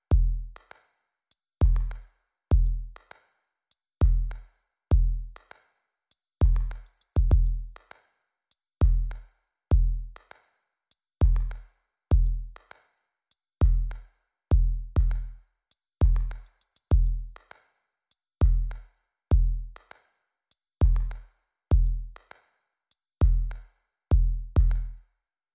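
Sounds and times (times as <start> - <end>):
drums: 1.6 - 3.2, 4.0 - 5.6, 6.4 - 8.0, 8.8 - 10.4, 11.2 - 12.8, 13.6 - 17.6, 18.4 - 20.0, 20.8 - 22.3, 23.2 - 25.0.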